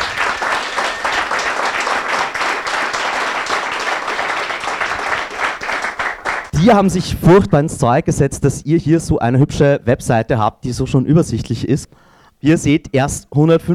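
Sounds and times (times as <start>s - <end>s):
audience applause: 0.0s - 6.5s
speech: 6.6s - 13.7s.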